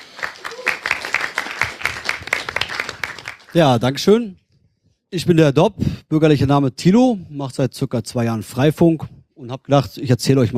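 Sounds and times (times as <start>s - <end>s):
short round of applause from a small group: 0.0s - 3.9s
speech: 3.6s - 4.4s, 5.1s - 10.5s.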